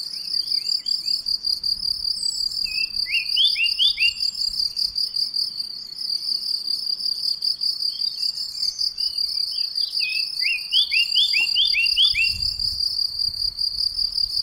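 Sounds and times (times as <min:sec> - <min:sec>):
crickets trilling: 0:00.0 - 0:14.4
Eurasian blackcap warbling: 0:10.4 - 0:12.3.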